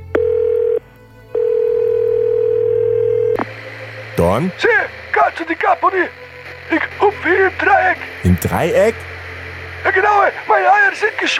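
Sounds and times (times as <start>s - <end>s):
telephone dial tone before a call: 0.0s - 3.4s
speech: 4.3s - 9.1s, 9.8s - 11.3s.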